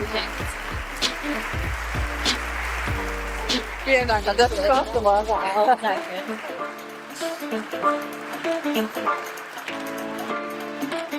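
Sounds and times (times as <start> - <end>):
audience clapping: 0.0 - 11.1
speech: 3.9 - 9.4.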